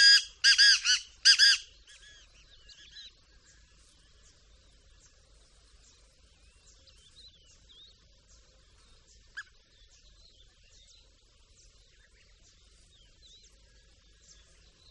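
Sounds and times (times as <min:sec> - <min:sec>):
black francolin giving harsh creaking calls: 0:00.0 - 0:02.1.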